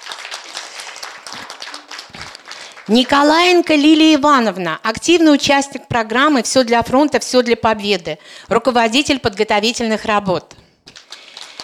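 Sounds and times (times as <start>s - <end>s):
audience applause: 0.0s - 3.3s, 11.0s - 11.6s
speech: 2.9s - 10.6s.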